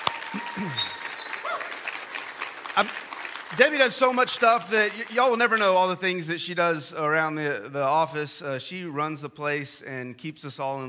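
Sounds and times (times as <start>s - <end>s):
applause: 0.0s - 6.0s
speech: 0.3s - 1.0s, 2.8s - 10.8s.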